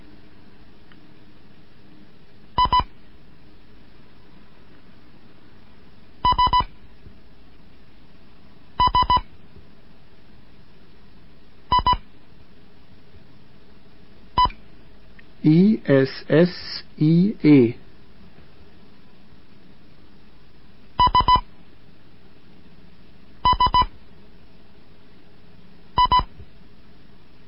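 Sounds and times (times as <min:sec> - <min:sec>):
Morse code beeps: 0:02.6 - 0:02.9, 0:06.3 - 0:06.7, 0:08.8 - 0:09.2, 0:11.7 - 0:12.0, 0:21.0 - 0:21.4, 0:23.4 - 0:23.9, 0:26.0 - 0:26.3
speech: 0:15.4 - 0:17.8.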